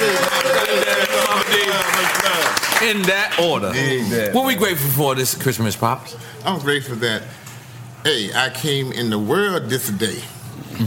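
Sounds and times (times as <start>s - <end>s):
cheers and whoops: 0.0s - 1.5s
audience applause: 0.0s - 3.6s
speech: 2.8s - 7.4s, 8.0s - 10.8s.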